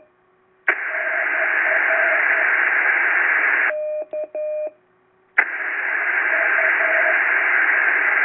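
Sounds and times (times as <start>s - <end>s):
10 GHz SSB CW radio echoes: 0.7s - 3.7s, 5.4s - 8.2s.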